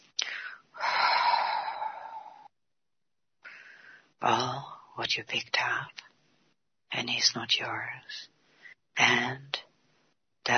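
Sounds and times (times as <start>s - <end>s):
long breathy exhale during a guided breathing exercise: 0.2s - 2.5s
speech: 4.2s - 6.0s, 7.0s - 8.3s, 9.0s - 9.6s.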